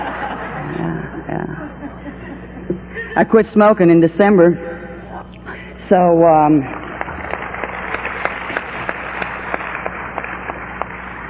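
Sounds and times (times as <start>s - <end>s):
laughter: 0.0s - 0.9s, 1.6s - 3.2s
speech: 1.2s - 2.1s, 3.2s - 4.7s, 5.8s - 6.8s
audience applause: 6.6s - 11.2s.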